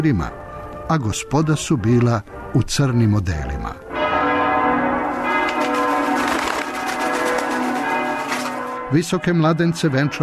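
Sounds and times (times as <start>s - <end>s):
speech: 0.0s - 3.9s, 8.9s - 10.2s
church bells ringing from Belgrade churches announcing a wedding: 3.9s - 10.2s.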